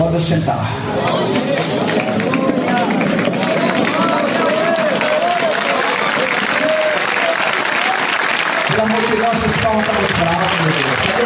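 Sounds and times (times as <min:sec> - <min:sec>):
speech: 0:00.2 - 0:02.0, 0:09.0 - 0:11.2
large crowd clapping hands: 0:00.9 - 0:11.2.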